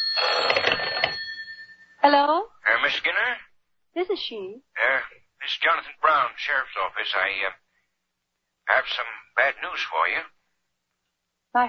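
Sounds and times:
telephone ringing: 0:00.0 - 0:02.0
speech: 0:02.9 - 0:07.6, 0:08.7 - 0:10.4.

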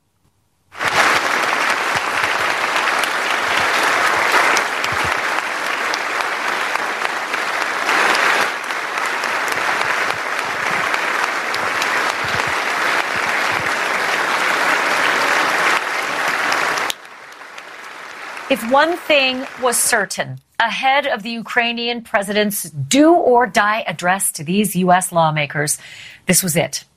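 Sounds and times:
standing ovation applause: 0:00.8 - 0:20.1
speech: 0:18.5 - 0:26.9.

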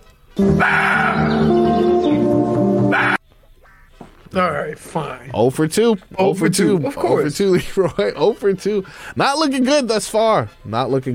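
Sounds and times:
roe deer yelping whine: 0:00.4 - 0:01.7, 0:02.8 - 0:03.2
speech: 0:04.4 - 0:11.1.

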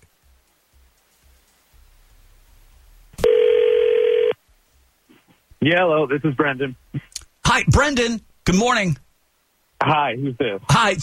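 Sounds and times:
telephone ringing: 0:03.2 - 0:04.4
speech: 0:05.6 - 0:09.0, 0:09.8 - 0:11.0.

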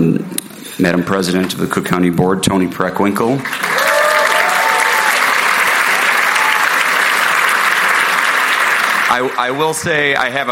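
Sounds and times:
speech: 0:00.8 - 0:03.9, 0:09.1 - 0:10.5
crowd clapping: 0:03.4 - 0:10.5
faint whistles or cheers: 0:03.7 - 0:05.3.

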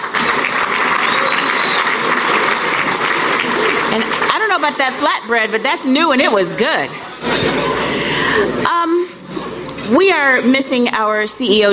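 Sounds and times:
audience applause: 0:00.0 - 0:05.1
speech: 0:04.0 - 0:07.7, 0:08.4 - 0:09.0, 0:09.9 - 0:11.7.

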